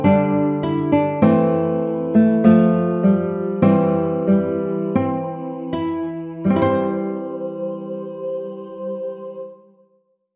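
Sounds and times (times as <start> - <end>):
baritone ukulele playing a folk song: 0.0 - 7.2.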